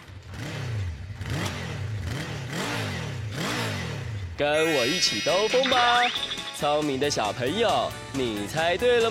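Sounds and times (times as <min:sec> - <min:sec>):
motorcycle engine revving: 0:00.3 - 0:04.4
speech: 0:04.4 - 0:09.0.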